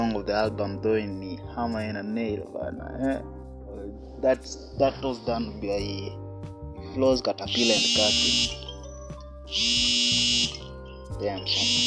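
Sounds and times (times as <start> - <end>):
speech: 0.1 - 6.2, 6.9 - 8.6, 9.5 - 10.6, 11.2 - 11.8
phone buzzing: 7.5 - 8.8, 9.5 - 10.7, 11.5 - 11.8.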